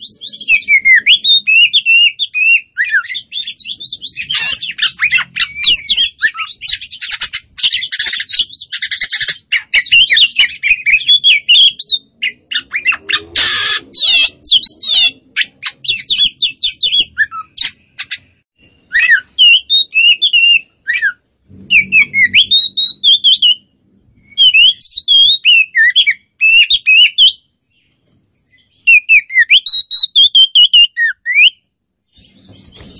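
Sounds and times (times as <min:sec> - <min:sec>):
Oriental magpie-robin singing: 0:00.0 - 0:32.9.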